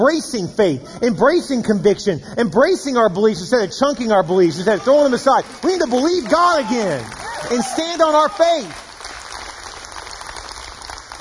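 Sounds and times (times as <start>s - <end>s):
speech: 0.0s - 8.8s
audience clapping: 3.9s - 11.2s.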